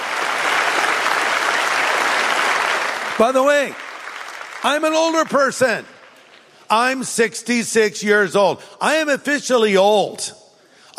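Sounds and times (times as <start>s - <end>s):
audience applause: 0.0s - 5.8s
speech: 3.2s - 3.8s, 4.6s - 5.9s, 6.7s - 10.4s.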